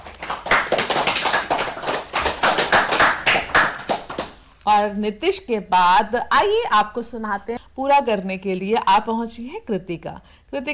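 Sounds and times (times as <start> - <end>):
children clapping for a speaker: 0.0 - 4.4
speech: 4.7 - 10.7.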